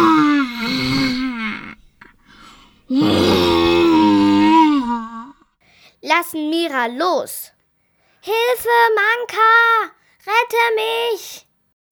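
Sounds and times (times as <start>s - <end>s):
loud creature roar: 0.0s - 1.8s, 2.9s - 5.4s
speech: 6.2s - 7.5s, 8.2s - 11.4s.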